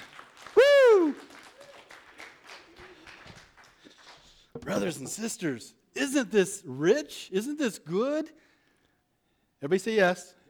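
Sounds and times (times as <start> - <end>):
audience clapping: 0.0 - 4.5
speech: 4.7 - 8.5, 9.6 - 10.4.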